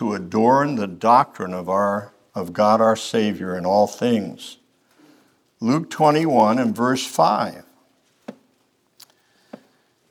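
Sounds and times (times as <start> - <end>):
speech: 0.0 - 4.6, 5.6 - 7.7
bible pages turning: 8.9 - 9.4.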